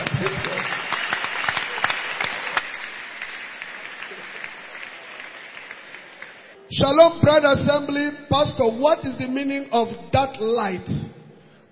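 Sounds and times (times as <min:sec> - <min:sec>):
crowd clapping hands: 0:00.0 - 0:06.6
speech: 0:00.2 - 0:00.8, 0:06.7 - 0:11.2.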